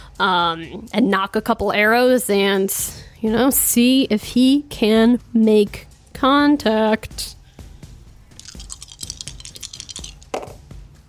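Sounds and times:
speech: 0.2s - 7.4s
several d20 dice rolled at once: 8.4s - 10.6s.

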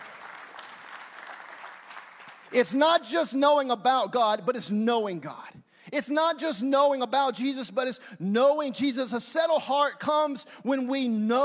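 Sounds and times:
audience clapping: 0.0s - 2.6s
speech: 2.5s - 11.4s.

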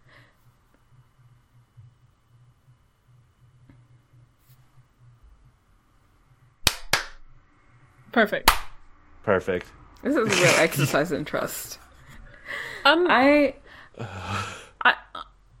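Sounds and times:
faint low hum: 0.0s - 15.5s
hand clap for recording sync: 6.6s - 7.2s
speech: 8.2s - 8.6s, 9.2s - 11.8s, 12.5s - 15.0s.

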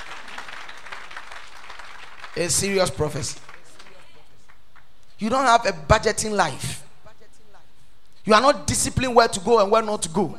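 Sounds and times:
crowd clapping: 0.0s - 4.9s
speech: 2.4s - 3.5s, 5.2s - 6.8s, 8.2s - 10.3s.

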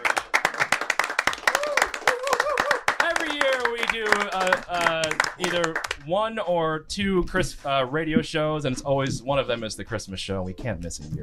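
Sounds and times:
applause: 0.0s - 6.0s
speech: 4.0s - 11.2s.

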